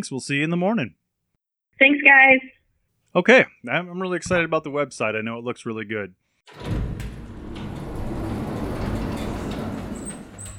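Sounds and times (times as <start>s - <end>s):
speech: 0.0s - 1.0s, 1.8s - 6.7s
elevator doors: 6.5s - 10.5s.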